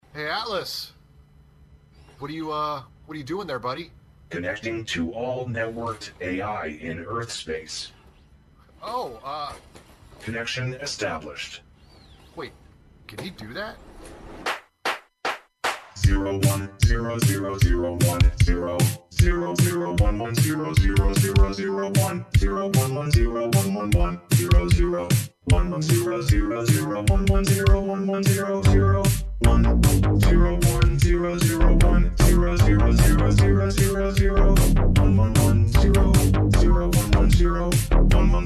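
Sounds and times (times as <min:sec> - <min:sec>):
noise: 0:00.0 - 0:38.4.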